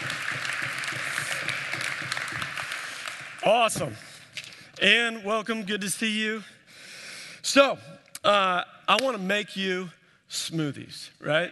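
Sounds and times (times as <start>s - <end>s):
audience applause: 0.0s - 3.7s
speech: 3.4s - 4.1s, 4.8s - 6.5s, 7.6s - 11.5s.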